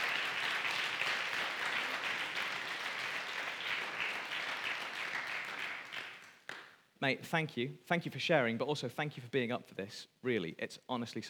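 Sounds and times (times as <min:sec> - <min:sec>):
audience applause: 0:00.0 - 0:06.6
speech: 0:07.0 - 0:11.2.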